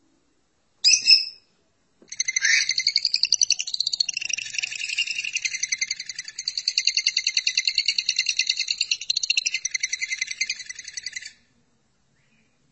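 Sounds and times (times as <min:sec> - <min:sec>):
lovebird rattling chatter: 0:02.1 - 0:11.3.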